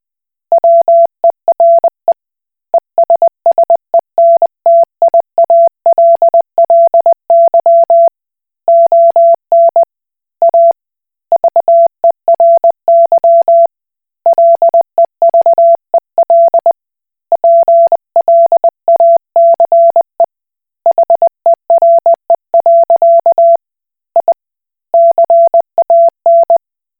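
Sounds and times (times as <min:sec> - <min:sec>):
Koch Morse code beeps: 0:00.5 - 0:01.9, 0:03.0 - 0:09.9, 0:11.4 - 0:13.7, 0:14.3 - 0:16.8, 0:17.4 - 0:20.0, 0:20.9 - 0:23.6, 0:25.0 - 0:26.6.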